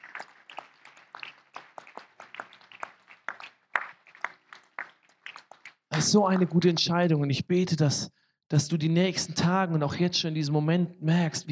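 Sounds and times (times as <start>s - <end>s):
audience applause: 0.0s - 6.1s
speech: 6.0s - 11.5s.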